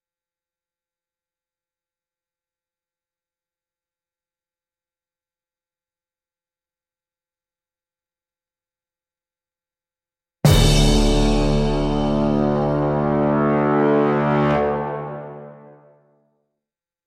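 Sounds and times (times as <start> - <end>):
heroic Soviet march music: 10.5 - 16.1.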